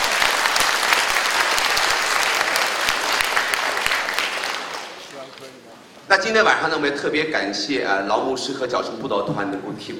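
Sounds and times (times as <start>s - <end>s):
audience applause: 0.0s - 5.2s
speech: 6.2s - 9.9s.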